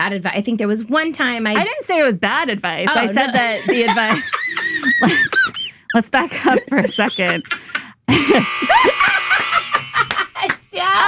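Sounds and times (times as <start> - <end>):
speech: 0.0 - 9.2
laughter: 2.9 - 11.0
buzzer: 8.1 - 10.3.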